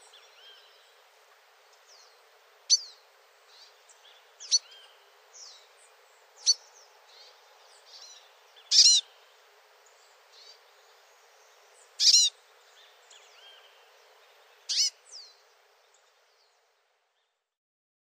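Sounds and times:
finch singing: 1.9s - 16.6s.

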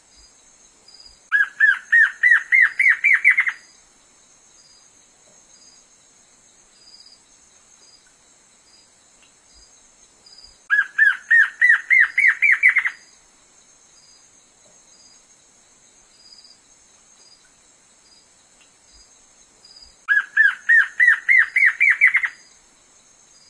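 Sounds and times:
black-crested antshrike song of accelerating arched notes: 1.3s - 3.8s, 10.7s - 13.1s, 19.8s - 22.6s.

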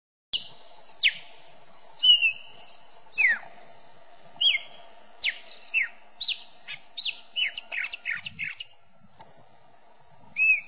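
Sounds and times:
Chopi blackbird song: 0.4s - 3.6s, 4.3s - 8.8s, 10.2s - 10.6s.

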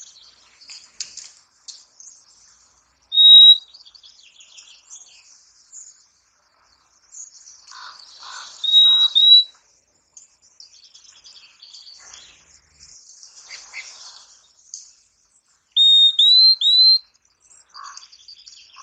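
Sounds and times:
purple-throated euphonia whistling clear rising high notes: 3.2s - 3.6s, 8.6s - 9.5s, 15.8s - 17.0s.

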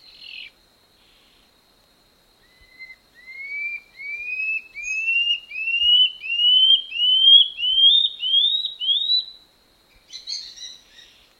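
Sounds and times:
common scale-backed antbird song of upslurred whistles: 2.4s - 9.4s, 10.0s - 11.3s.

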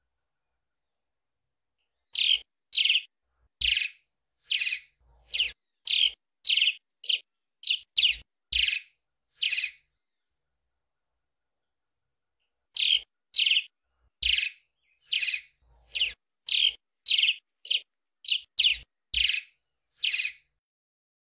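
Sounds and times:
swallow singing: 2.1s - 9.9s, 12.8s - 20.5s.

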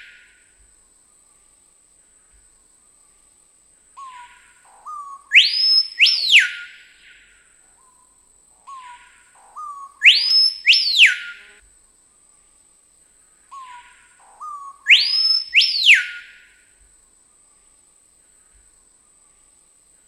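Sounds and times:
screaming piha song of loud piercing whistles: 4.0s - 8.1s, 8.7s - 11.6s, 13.5s - 16.6s.

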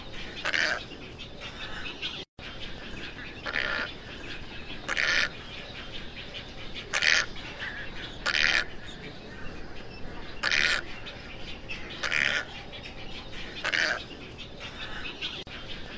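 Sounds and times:
tricolored heron squawks: 0.2s - 2.1s, 3.0s - 9.5s, 10.2s - 11.1s, 11.8s - 12.6s, 13.4s - 15.9s.

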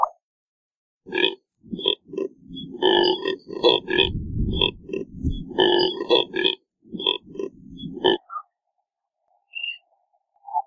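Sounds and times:
Neotropic cormorant deep rough grunts: 1.1s - 8.3s.

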